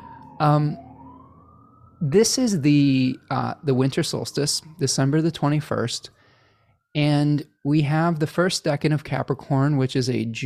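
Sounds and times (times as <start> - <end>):
fire truck sirens passing by: 0.0 - 8.1
speech: 0.4 - 0.8, 2.0 - 6.2, 6.9 - 10.4.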